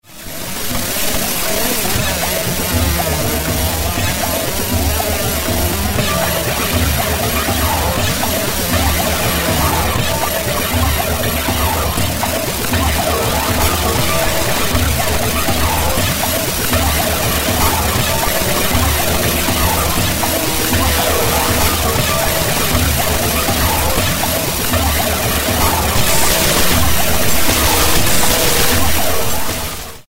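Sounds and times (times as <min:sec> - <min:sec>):
washing machine spin cycle: 0:00.0 - 0:30.0.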